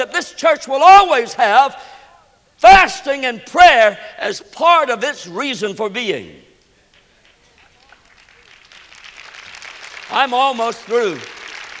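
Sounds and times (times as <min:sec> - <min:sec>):
speech: 0:00.2 - 0:01.9, 0:02.6 - 0:06.4, 0:10.1 - 0:11.4
audience clapping: 0:06.6 - 0:11.7.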